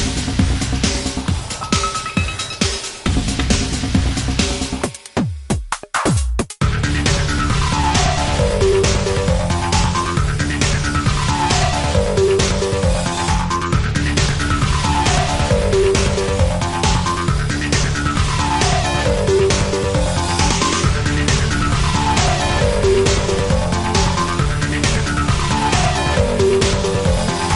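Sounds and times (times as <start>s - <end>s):
music: 0.0s - 27.5s.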